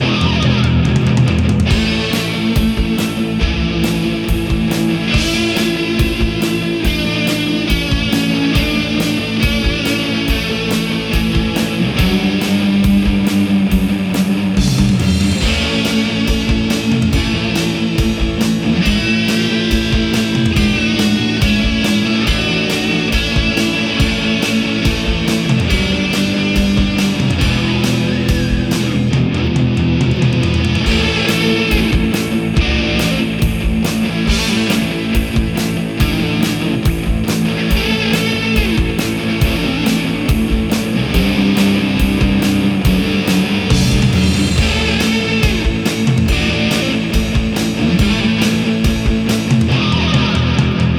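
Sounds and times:
guitar: 0.0 - 50.9.

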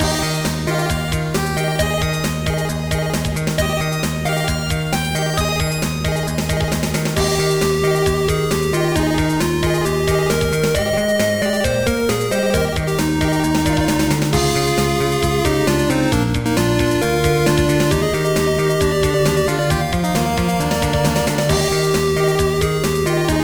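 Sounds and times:
chiptune music: 0.0 - 23.4.

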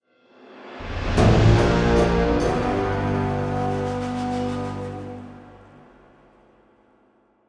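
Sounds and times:
battle music loop for losing: 1.2 - 5.5.

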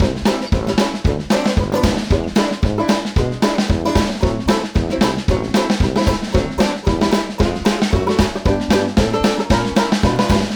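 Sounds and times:
music tutorial loop: 0.0 - 10.5.

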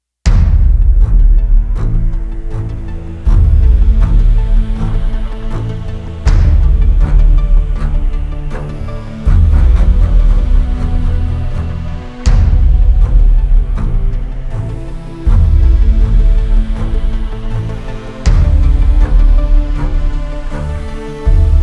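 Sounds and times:
tense combat music: 0.3 - 21.6.

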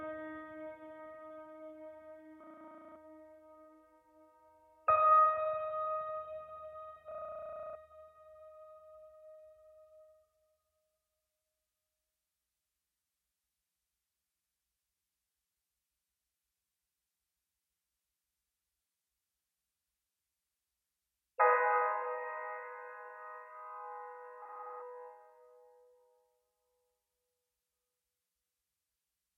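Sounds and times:
piano: 0.0 - 10.4, 21.4 - 26.4.

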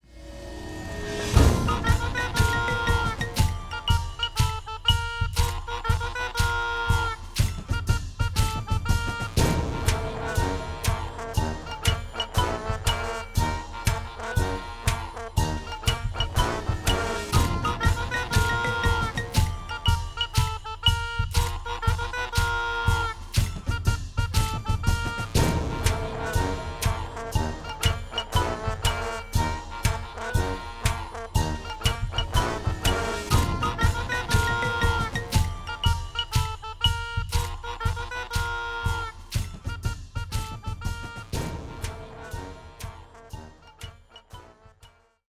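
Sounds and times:
music loop: 1.2 - 44.9.

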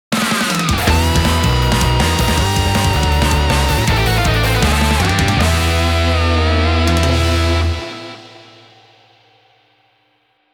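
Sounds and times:
battle success victory music: 0.7 - 8.7.

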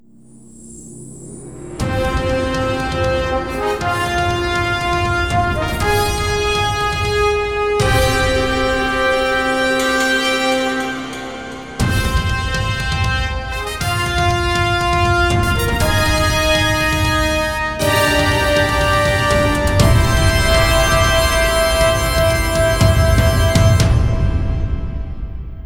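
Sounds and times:
fanfare: 1.8 - 25.1.

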